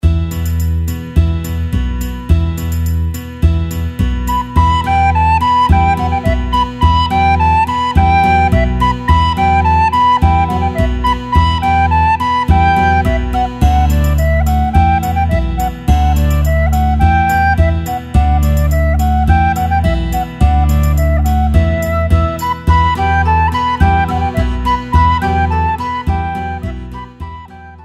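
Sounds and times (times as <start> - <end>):
instrumental music: 0.0 - 27.8.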